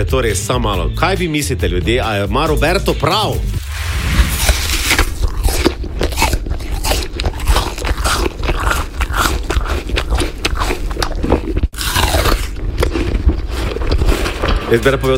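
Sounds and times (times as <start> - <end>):
speech: 0.0 - 4.3, 14.7 - 15.1
person chewing an apple loudly: 4.2 - 14.5.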